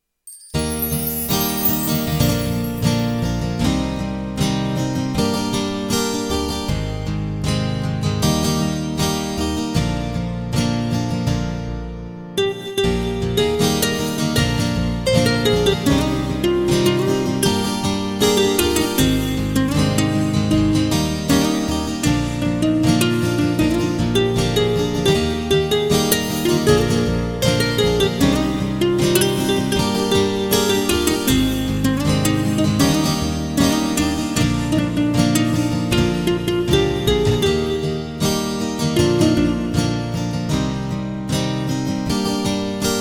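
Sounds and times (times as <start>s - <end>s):
guitar performance: 0.5s - 42.9s.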